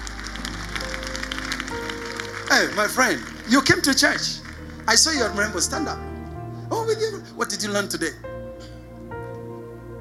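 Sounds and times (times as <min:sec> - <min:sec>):
audience clapping hands: 0:00.0 - 0:06.0
speech: 0:02.5 - 0:06.1, 0:06.9 - 0:08.3.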